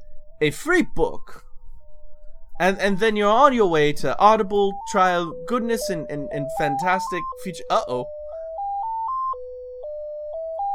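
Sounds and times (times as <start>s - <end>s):
speech: 0.4s - 1.4s, 2.6s - 8.2s
ice cream truck jingle driving past: 2.6s - 10.7s.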